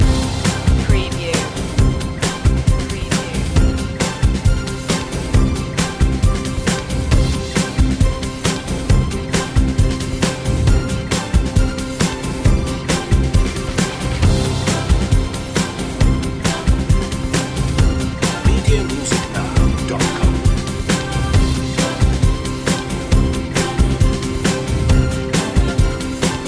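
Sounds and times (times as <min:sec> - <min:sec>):
big celebration music loop: 0:00.0 - 0:26.4.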